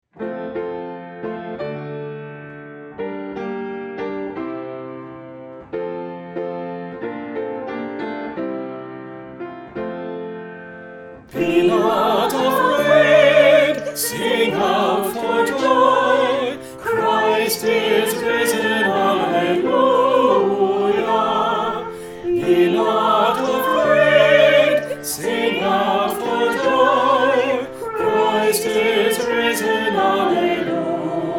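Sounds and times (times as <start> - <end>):
anthem music: 11.3 - 31.3.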